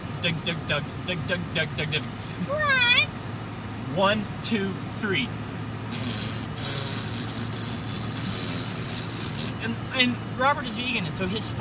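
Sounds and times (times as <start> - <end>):
speech: 0.2 - 3.2, 3.9 - 6.3, 9.6 - 11.6
voice imitating a fart: 5.9 - 9.6.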